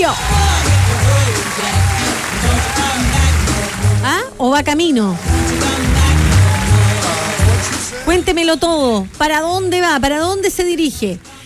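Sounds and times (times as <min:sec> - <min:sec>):
applause: 0:00.0 - 0:04.1, 0:05.2 - 0:08.3
speech: 0:04.4 - 0:05.9, 0:08.2 - 0:11.3.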